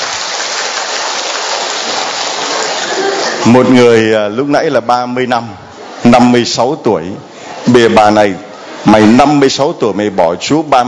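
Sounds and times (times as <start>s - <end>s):
big round of applause: 0.0s - 3.4s
speech: 3.4s - 10.8s.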